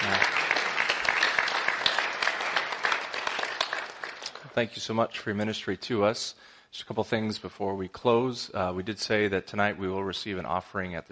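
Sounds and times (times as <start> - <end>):
audience applause: 0.0 - 4.6
speech: 4.6 - 11.0.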